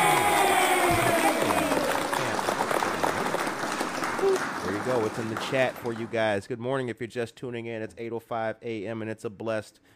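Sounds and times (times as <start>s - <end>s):
audience clapping: 0.0s - 6.4s
speech: 5.1s - 9.9s.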